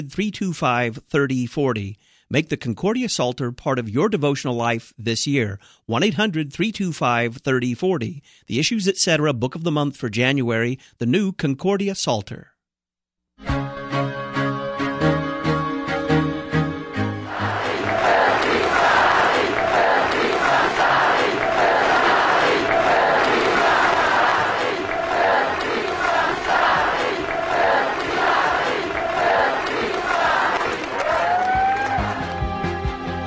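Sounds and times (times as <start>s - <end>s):
speech: 0.0s - 12.5s
music: 13.4s - 20.0s, 31.4s - 33.2s
large crowd of demonstrators chanting in unison: 17.0s - 31.4s.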